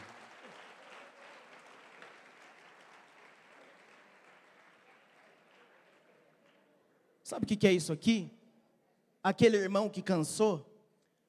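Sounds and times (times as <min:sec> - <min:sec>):
audience applause from a large crowd: 0:00.0 - 0:06.6
speech: 0:07.3 - 0:08.4, 0:09.2 - 0:10.7.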